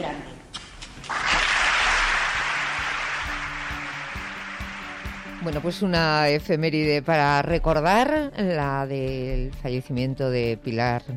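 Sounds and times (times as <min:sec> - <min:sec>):
theatre audience applause in tribute to film director Pilar Miró: 0:01.1 - 0:06.2
speech: 0:05.4 - 0:11.1.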